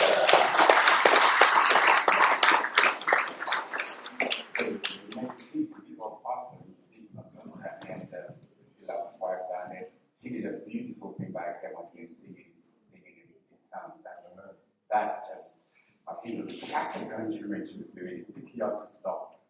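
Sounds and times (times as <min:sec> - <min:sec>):
audience giving a hand clap: 0:00.0 - 0:05.6
murmuring voices: 0:01.7 - 0:09.5
speech: 0:16.3 - 0:19.3.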